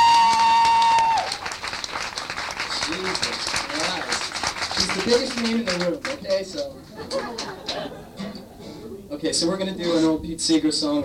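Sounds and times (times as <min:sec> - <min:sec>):
audience applause: 0:00.0 - 0:06.4
speech: 0:04.8 - 0:08.0, 0:09.2 - 0:11.0
laughter: 0:06.5 - 0:09.0.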